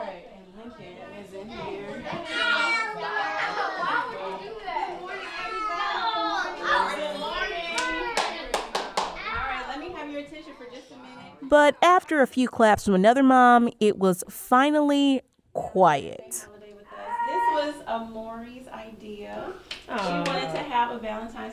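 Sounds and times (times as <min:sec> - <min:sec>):
many children playing at a party: 0:00.9 - 0:11.4, 0:16.9 - 0:17.8
speech: 0:11.5 - 0:16.5, 0:17.6 - 0:21.5.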